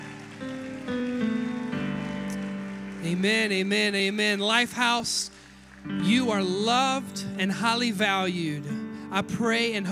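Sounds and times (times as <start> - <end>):
audience clapping: 0.0 - 4.0
sustained organ-like chords: 0.0 - 9.8
speech: 3.0 - 9.8.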